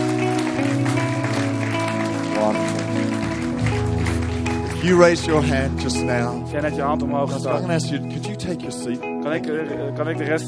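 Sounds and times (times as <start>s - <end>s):
audience applause: 0.0s - 6.4s
speech: 4.8s - 10.4s.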